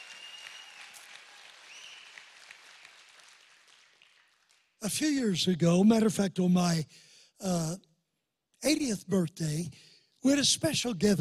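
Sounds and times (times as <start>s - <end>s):
audience applause: 0.0s - 4.8s
speech: 4.8s - 7.9s, 8.6s - 11.1s.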